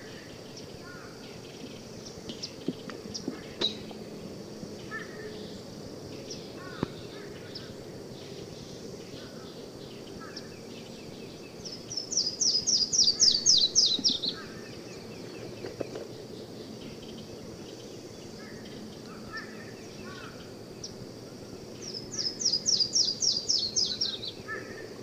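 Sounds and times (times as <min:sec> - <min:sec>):
Yellow-throated warbler singing rapid high descending slurred whistles: 0:00.0 - 0:04.0, 0:04.8 - 0:21.0, 0:21.7 - 0:24.9.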